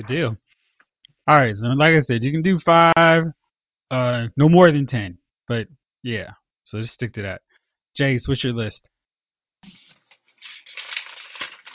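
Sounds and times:
speech: 0.0s - 0.4s, 1.3s - 8.9s, 9.6s - 9.8s
paper sheets being flipped and rattled: 9.6s - 11.7s.

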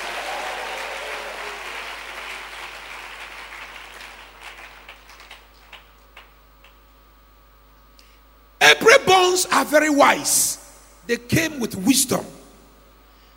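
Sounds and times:
audience clapping hands: 0.0s - 7.0s
speech: 8.7s - 12.3s.

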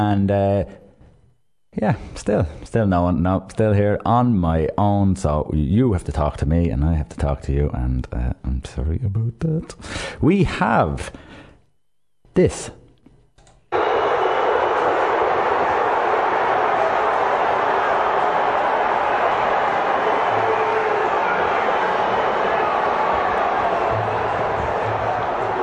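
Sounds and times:
speech: 0.0s - 0.8s, 1.7s - 11.3s, 12.4s - 12.8s
football crowd roaring as Sunderland are relegated: 13.7s - 25.6s.

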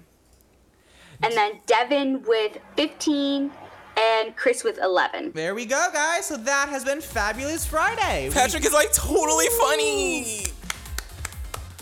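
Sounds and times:
speech: 1.2s - 10.5s
one person clapping: 10.4s - 11.8s.

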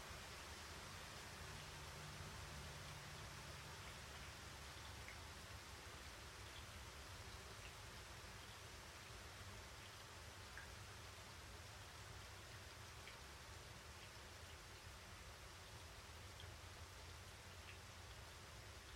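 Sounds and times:
rainstorm in the mountains heard from a window: 0.0s - 18.9s
light drips: 0.1s - 18.9s.

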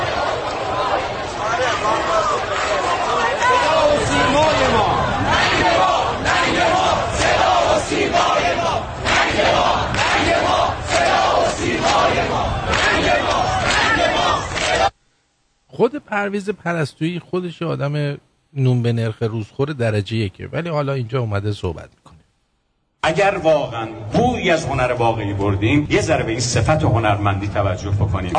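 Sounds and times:
large crowd chanting slogans in unison: 0.0s - 14.9s
speech: 16.2s - 22.1s, 23.0s - 28.3s.

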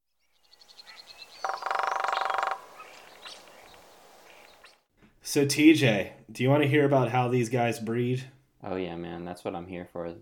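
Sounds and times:
background hiss: 0.2s - 10.2s
Northern Flicker drumming: 0.4s - 4.9s
speech: 5.3s - 10.2s.

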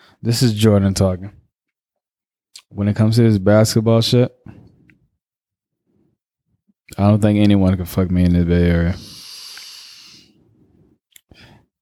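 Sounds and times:
speech: 0.2s - 1.4s, 2.7s - 4.6s, 6.9s - 9.2s
loud breath exhaled like a sigh: 9.0s - 11.7s.

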